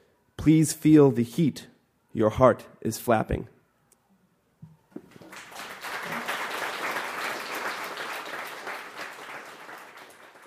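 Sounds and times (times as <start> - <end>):
speech: 0.4 - 3.5
audience applause: 5.1 - 10.4.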